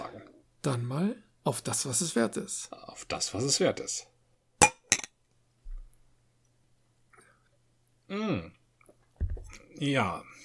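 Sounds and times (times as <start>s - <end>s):
speech: 0.6s - 4.1s, 8.1s - 8.6s, 9.8s - 10.4s
glass of sparkling wine and a can clinking in a toast: 4.6s - 5.1s.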